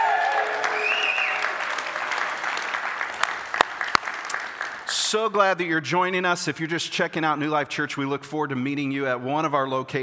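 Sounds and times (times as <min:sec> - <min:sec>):
audience cheering and applauding: 0:00.0 - 0:04.9
speech: 0:05.1 - 0:10.0.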